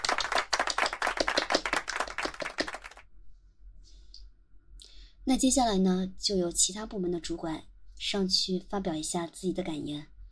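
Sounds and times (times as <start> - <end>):
group applause in a meeting: 0.0 - 3.0
speech: 5.3 - 10.1.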